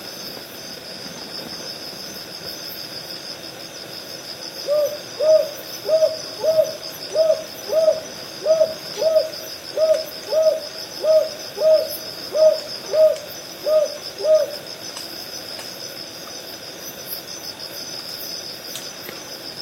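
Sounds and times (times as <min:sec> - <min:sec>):
high-pitched insect drone: 0:00.0 - 0:19.6
northern boobook hooting: 0:04.6 - 0:14.6.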